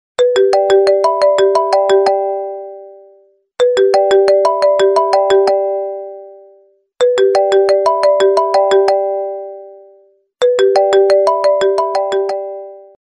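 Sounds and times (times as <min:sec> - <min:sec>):
Apple phone ring: 0:00.2 - 0:02.9, 0:03.6 - 0:06.2, 0:07.0 - 0:09.6, 0:10.4 - 0:13.0.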